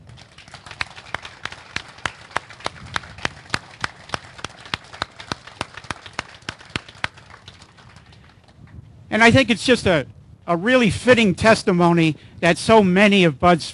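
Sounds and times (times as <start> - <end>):
audience applause: 0.0 - 8.6
speech: 9.2 - 13.7.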